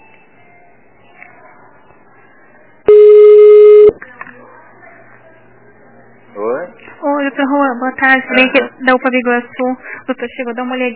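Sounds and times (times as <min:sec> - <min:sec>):
telephone line beep as a call is transferred: 0:02.9 - 0:03.9
speech: 0:07.4 - 0:10.9.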